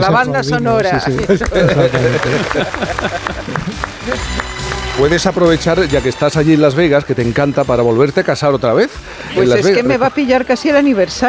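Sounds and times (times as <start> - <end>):
speech: 0.0 - 4.3, 5.0 - 11.2
overlapping talk: 0.0 - 11.2
rhythmic hand claps: 0.5 - 7.9
people laughing: 0.9 - 5.9.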